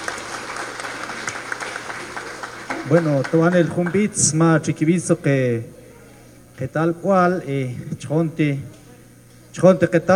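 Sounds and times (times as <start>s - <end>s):
applause for a community gathering: 0.0s - 4.1s
speech: 2.9s - 5.8s, 6.6s - 8.8s, 9.5s - 10.1s.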